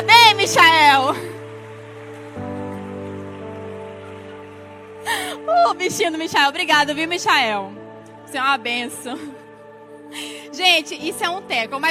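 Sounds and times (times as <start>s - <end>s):
audience applause: 0.0s - 6.3s
speech: 0.5s - 1.4s, 5.8s - 9.4s, 10.1s - 11.9s.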